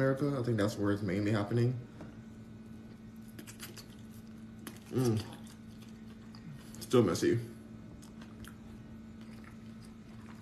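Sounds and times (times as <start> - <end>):
speech: 0.0 - 2.0, 4.9 - 5.4, 6.9 - 7.5
wet chewing of a sandwich: 2.8 - 6.9, 7.9 - 10.3.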